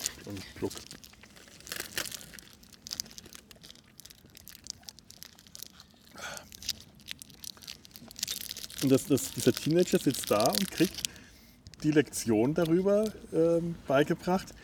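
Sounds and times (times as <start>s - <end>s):
crunchy bites into a Ballisto chocolate bar: 0.0s - 11.9s
Ballisto chocolate bar wrapper crinkling and tearing: 0.0s - 13.2s
speech: 0.3s - 1.1s, 8.8s - 11.1s, 11.8s - 14.6s.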